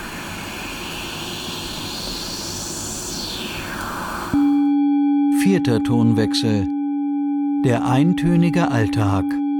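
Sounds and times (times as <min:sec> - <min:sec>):
white noise through resonant filter: 0:00.0 - 0:04.7
speech: 0:05.5 - 0:06.8, 0:07.6 - 0:09.4.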